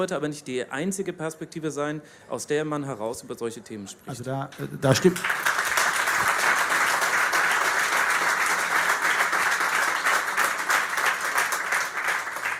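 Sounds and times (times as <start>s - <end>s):
speech: 0.0s - 5.5s
audience applause: 4.9s - 12.5s.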